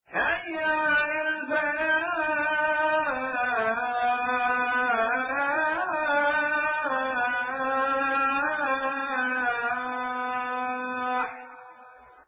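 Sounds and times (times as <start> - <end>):
Azan call to prayer: 0.1 - 12.0.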